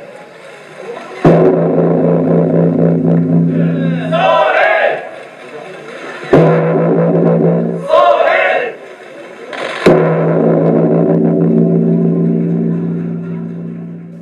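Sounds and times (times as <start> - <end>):
deep Japanese temple New Year bell tolling: 1.3 - 4.8, 6.4 - 7.9, 9.9 - 14.2.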